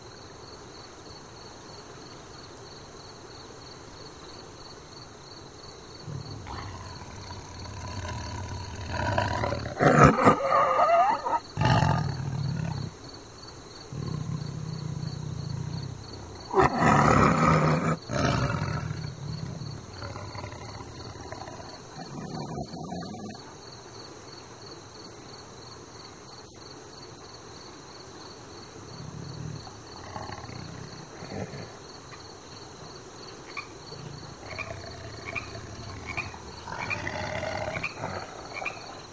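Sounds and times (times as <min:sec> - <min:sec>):
animals at a riverside: 0:05.9 - 0:23.7, 0:28.6 - 0:39.1.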